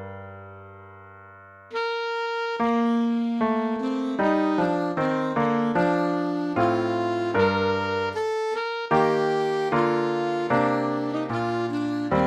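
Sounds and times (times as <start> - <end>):
alto saxophone solo: 1.7 - 12.2.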